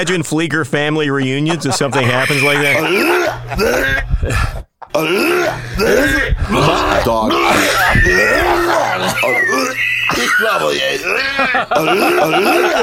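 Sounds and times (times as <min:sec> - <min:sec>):
speech: 0:00.0 - 0:12.8
laughter: 0:01.2 - 0:12.8
person gagging, recorded gag reflex: 0:01.9 - 0:12.8.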